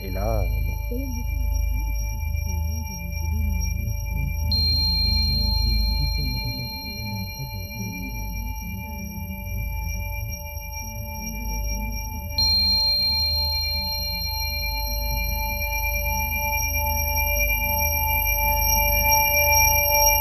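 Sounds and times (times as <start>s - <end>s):
low rumbling drone: 0.0s - 18.3s
high-pitched ringing tones simulating tinnitus: 0.0s - 20.1s
speech: 0.9s - 1.4s
sharp pings: 4.5s - 8.4s, 12.4s - 16.0s.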